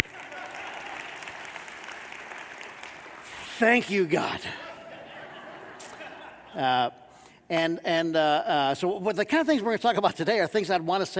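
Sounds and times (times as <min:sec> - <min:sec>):
laughter: 0:00.0 - 0:01.3, 0:04.4 - 0:07.0
applause from many hands: 0:00.0 - 0:04.0
speech: 0:03.6 - 0:04.6, 0:06.6 - 0:11.1.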